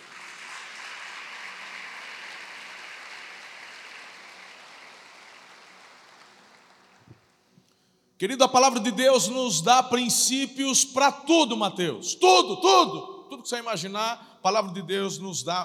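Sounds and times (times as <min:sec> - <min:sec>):
audience applauding: 0:00.0 - 0:07.3
speech: 0:08.2 - 0:15.6.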